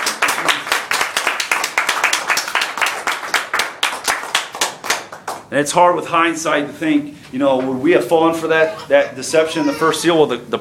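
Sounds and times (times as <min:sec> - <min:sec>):
audience clapping hands in praise: 0:00.0 - 0:05.5
speech: 0:05.5 - 0:10.5.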